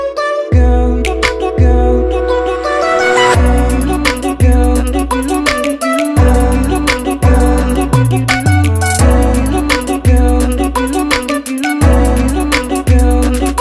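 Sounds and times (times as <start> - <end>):
chill trap ringtone: 0.2 - 13.4.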